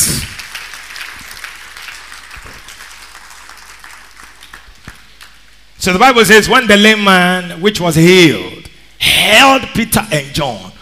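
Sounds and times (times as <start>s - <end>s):
audience clapping hands: 0.0s - 5.5s
speech: 5.8s - 8.6s, 9.3s - 10.7s.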